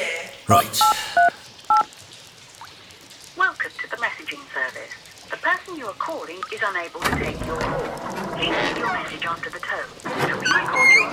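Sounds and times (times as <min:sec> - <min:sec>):
speech: 0:00.5 - 0:01.0, 0:05.7 - 0:11.1
touch-tone beeps from a phone keypad being dialed: 0:00.5 - 0:01.9.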